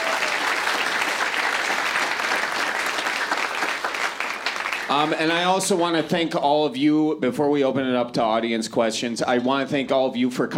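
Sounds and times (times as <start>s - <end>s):
audience applause: 0.0s - 5.5s
speech: 4.9s - 10.5s.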